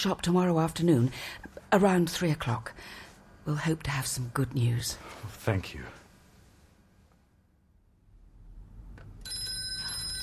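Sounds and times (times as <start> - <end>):
speech: 0.0 - 6.0
telephone bell ringing: 9.2 - 10.2.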